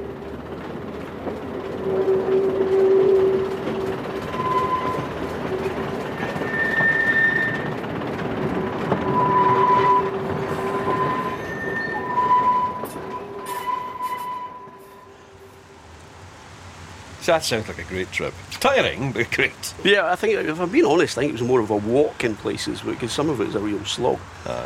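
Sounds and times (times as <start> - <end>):
train wheel screaming: 0.0 - 15.7
train crossing viaduct: 0.0 - 24.6
speech: 17.3 - 24.6.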